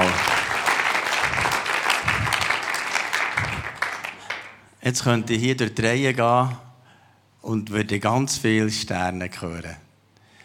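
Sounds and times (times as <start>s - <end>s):
audience applause: 0.0s - 4.6s
speech: 4.9s - 6.6s, 7.5s - 9.8s.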